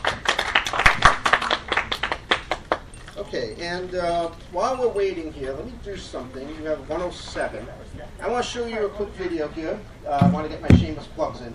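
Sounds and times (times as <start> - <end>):
round of applause: 0.0 - 3.0
speech: 3.3 - 11.5.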